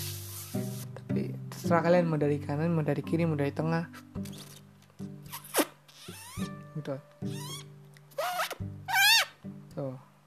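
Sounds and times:
speech: 0:01.7 - 0:04.0, 0:06.8 - 0:07.6
beatbox zipper sound made with lips: 0:05.3 - 0:06.5, 0:07.3 - 0:09.3.

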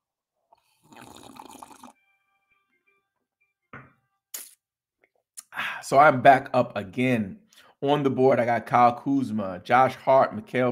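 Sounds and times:
person sipping coffee: 0:00.5 - 0:02.0
speech: 0:05.8 - 0:10.7.

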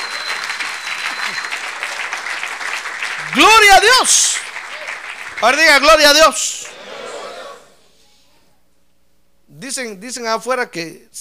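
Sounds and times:
audience applause: 0:00.0 - 0:07.7
speech: 0:03.4 - 0:04.4, 0:05.4 - 0:06.6, 0:09.7 - 0:11.1.

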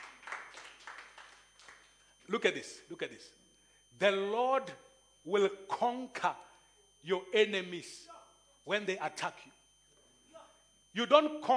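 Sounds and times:
audience clapping hands: 0:00.0 - 0:02.0
speech: 0:02.3 - 0:03.4, 0:04.0 - 0:09.6, 0:10.9 - 0:11.5.

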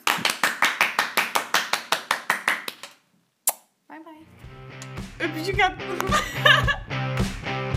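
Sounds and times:
applause: 0:00.0 - 0:03.0
speech: 0:05.2 - 0:07.6
person talking or laughing: 0:05.9 - 0:06.9.

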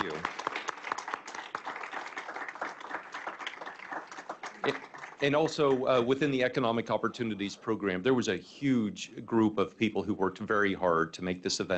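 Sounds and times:
round of applause from audience: 0:00.0 - 0:06.4
speech: 0:04.7 - 0:11.7.

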